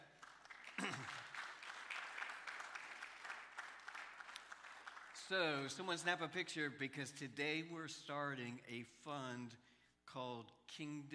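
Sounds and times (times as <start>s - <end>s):
audience applause: 0.0s - 5.7s
speech: 5.3s - 11.1s.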